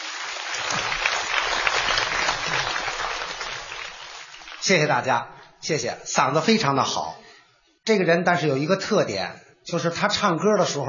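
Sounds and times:
audience applause: 0:00.0 - 0:04.8
speech: 0:04.6 - 0:07.2, 0:07.9 - 0:10.8.

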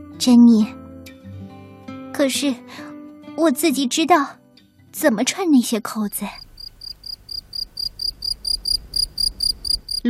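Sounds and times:
speech: 0:00.2 - 0:00.8, 0:02.2 - 0:06.4
crickets chirping outside at night: 0:06.1 - 0:10.0.

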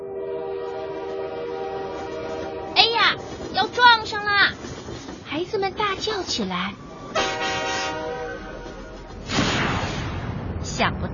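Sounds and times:
train horn: 0:00.0 - 0:04.2, 0:07.1 - 0:09.1
oncoming train: 0:00.0 - 0:11.1
speech: 0:03.1 - 0:04.6, 0:05.3 - 0:07.2.

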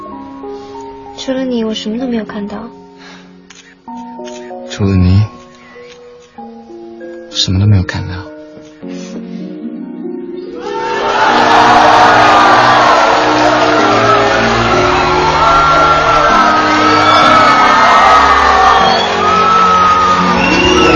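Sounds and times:
speech: 0:01.3 - 0:03.2, 0:04.8 - 0:05.3, 0:07.4 - 0:08.3
crowd cheering: 0:10.5 - 0:20.9.

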